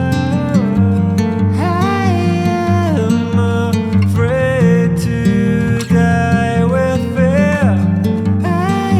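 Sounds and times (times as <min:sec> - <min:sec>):
acoustic music: 0:00.0 - 0:08.9.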